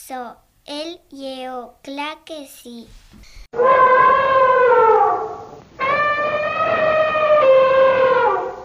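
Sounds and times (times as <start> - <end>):
speech: 0.0 - 3.7
elephant trumpeting: 3.6 - 8.6.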